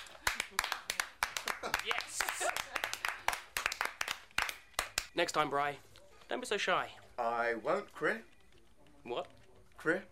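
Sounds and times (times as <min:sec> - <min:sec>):
round of applause: 0:00.0 - 0:05.0
speech: 0:05.2 - 0:08.3, 0:09.0 - 0:10.1.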